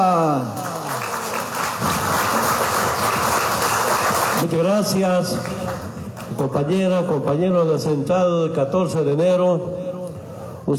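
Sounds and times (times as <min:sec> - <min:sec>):
crowd applauding: 0:00.0 - 0:06.5
speech: 0:04.4 - 0:05.7, 0:06.4 - 0:09.8.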